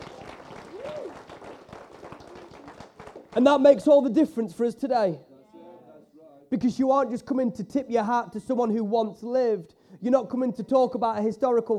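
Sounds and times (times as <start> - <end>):
audience clapping: 0.0 - 3.7
speech: 3.4 - 5.3, 6.5 - 11.7.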